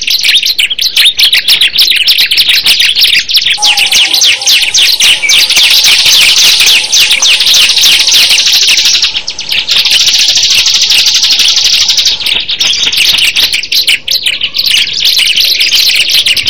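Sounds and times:
bar-winged prinia singing: 0:00.0 - 0:16.4.

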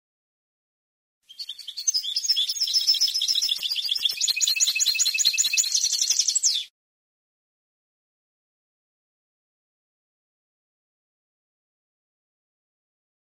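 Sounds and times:
European goldfinch singing: 0:01.3 - 0:06.7.

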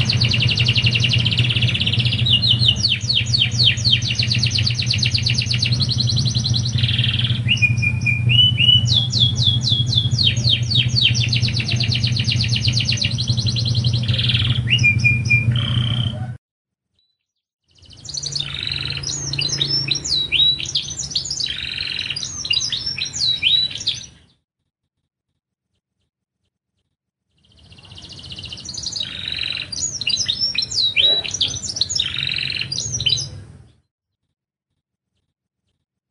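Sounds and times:
canary singing: 0:00.0 - 0:16.4, 0:17.7 - 0:24.4, 0:27.4 - 0:33.8
low steady hum: 0:00.0 - 0:16.4.

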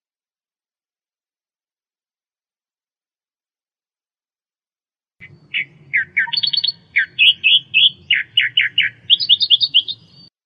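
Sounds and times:
Australian reed warbler song: 0:05.2 - 0:10.3.

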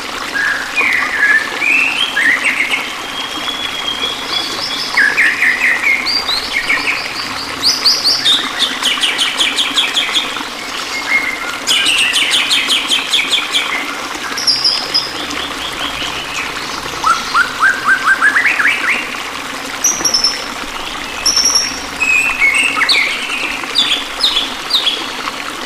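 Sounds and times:
songbird chirps: 0:00.4 - 0:25.5.

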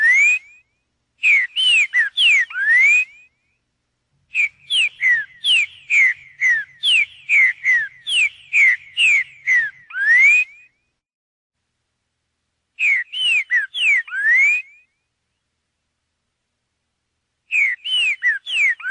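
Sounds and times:
green-winged saltator song: 0:00.0 - 0:03.6, 0:04.3 - 0:10.9, 0:12.8 - 0:15.1, 0:17.5 - 0:18.8.

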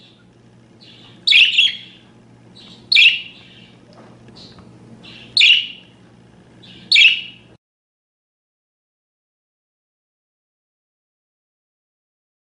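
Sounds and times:
parakeet giving sharp calls: 0:00.0 - 0:06.0, 0:06.6 - 0:07.6.

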